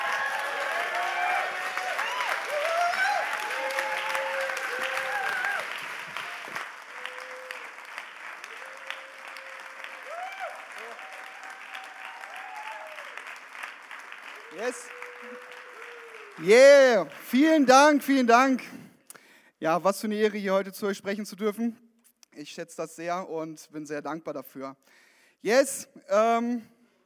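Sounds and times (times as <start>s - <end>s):
crowd applause welcoming a speaker: 0.0s - 18.0s
speech: 16.4s - 18.8s, 19.6s - 21.8s, 22.4s - 26.7s.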